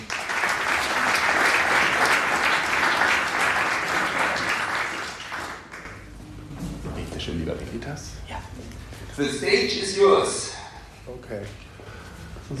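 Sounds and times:
audience applause: 0.0s - 6.2s
speech: 9.2s - 10.5s, 11.1s - 11.6s.

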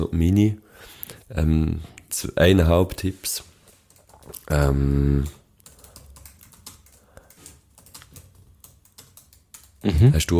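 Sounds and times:
speech: 0.0s - 0.6s, 1.3s - 3.5s, 4.3s - 5.4s, 9.8s - 10.3s
computer keyboard typing during a Google search: 3.5s - 10.0s.

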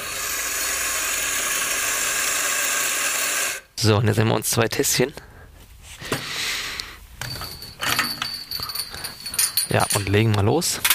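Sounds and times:
coffee grinder grinding coffee for espresso: 0.0s - 3.7s
speech: 3.8s - 5.3s, 9.7s - 10.9s.

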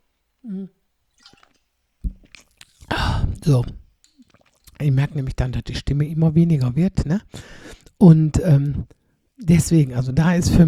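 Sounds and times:
speech: 0.4s - 0.8s, 3.5s - 3.8s, 4.8s - 10.6s
person sipping and swallowing a drink: 1.1s - 6.7s.

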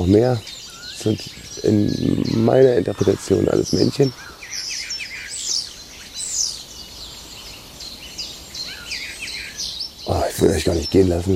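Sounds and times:
speech: 0.0s - 4.7s, 10.4s - 11.3s
starling singing: 0.0s - 11.3s.

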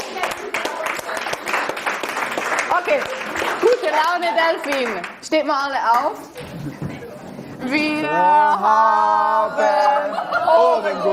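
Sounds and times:
audience clapping at a lively event: 0.0s - 6.1s
speech: 2.8s - 6.8s, 7.6s - 11.1s
laughter: 6.4s - 7.6s, 9.4s - 11.1s.

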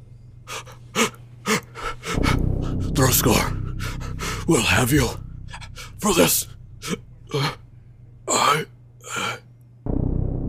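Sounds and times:
futile gasping for air: 0.5s - 7.6s, 8.3s - 9.5s
speech: 3.0s - 3.6s, 4.5s - 5.2s, 6.0s - 7.6s.

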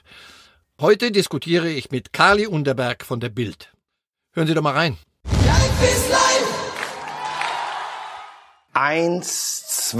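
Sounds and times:
speech: 0.8s - 3.8s, 4.4s - 6.2s, 8.8s - 9.9s
crowd cheering: 5.4s - 8.6s.

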